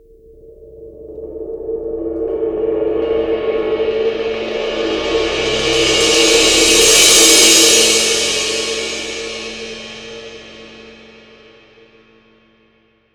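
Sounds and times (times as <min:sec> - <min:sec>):
22-inch crash cymbal roll: 0:02.4 - 0:12.6.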